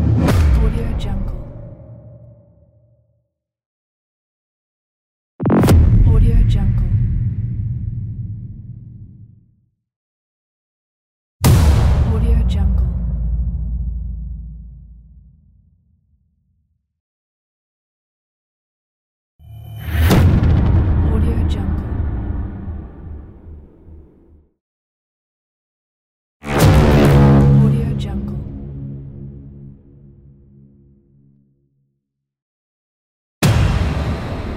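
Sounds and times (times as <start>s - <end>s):
epic trailer hits: 0.0s - 1.9s, 5.4s - 9.2s, 11.4s - 15.2s, 19.4s - 24.4s, 26.5s - 29.3s, 33.4s - 34.5s.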